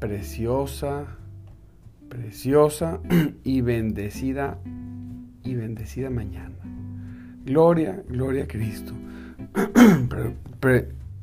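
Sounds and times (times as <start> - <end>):
speech: 0.0 - 1.2, 2.1 - 6.8, 7.4 - 11.0
person clearing throat: 3.1 - 3.4, 9.6 - 10.2.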